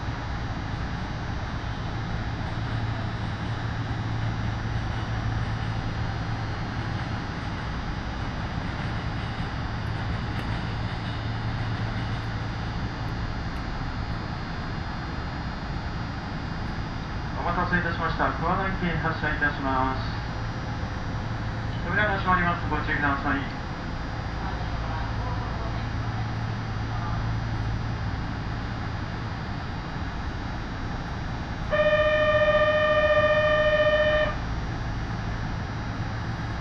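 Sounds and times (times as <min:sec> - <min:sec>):
Yōrō Railway train rumble and hum: 0:00.0 - 0:36.5
electronic tone: 0:31.6 - 0:34.6.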